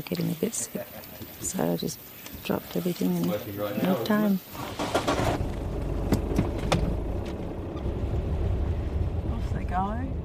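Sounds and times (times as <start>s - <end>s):
speech: 0.0s - 5.5s
car driving along a gravel road toward Fitzroy on Aotea: 4.6s - 10.2s.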